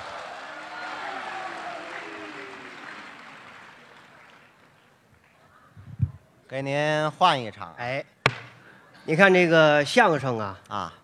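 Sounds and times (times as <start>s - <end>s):
audience applause: 0.0s - 5.0s
speech: 6.5s - 8.1s, 9.1s - 11.0s.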